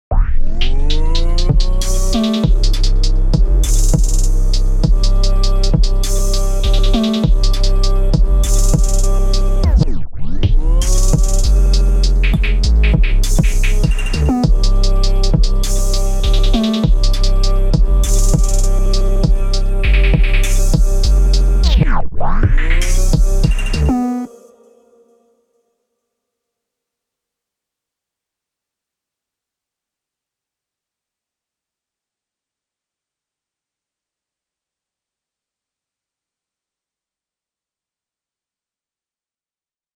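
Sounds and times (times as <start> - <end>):
trap beat: 0.5 - 24.4.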